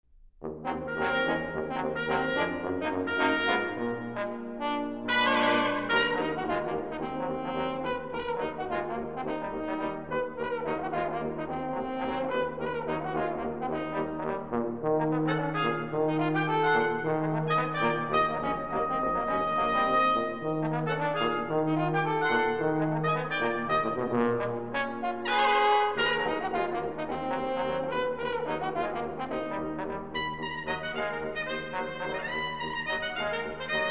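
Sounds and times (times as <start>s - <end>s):
brass ensemble playing: 0.4s - 33.8s.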